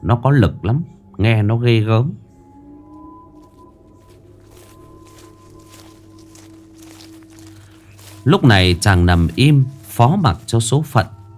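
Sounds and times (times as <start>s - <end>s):
speech: 0.1s - 2.2s, 8.2s - 11.2s
low droning hum: 2.2s - 8.2s
heavy tiger footsteps on dry leaves: 3.4s - 11.3s.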